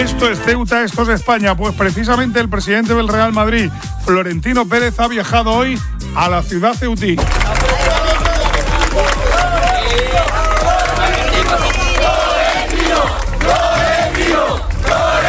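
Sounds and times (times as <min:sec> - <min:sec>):
speech: 0:00.0 - 0:07.6
crowd of Real Madrid supporters cheering, shouting and chanting in Ceuta: 0:07.2 - 0:15.2.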